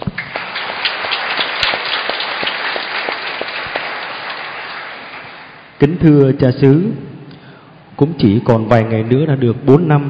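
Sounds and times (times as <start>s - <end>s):
parish congregation applause: 0.0s - 5.8s
speech: 5.8s - 7.1s, 8.0s - 10.0s.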